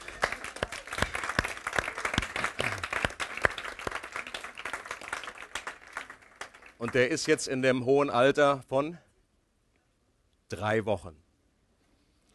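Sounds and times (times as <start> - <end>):
audience applause: 0.0 - 7.4
speech: 6.8 - 9.1, 10.5 - 11.2.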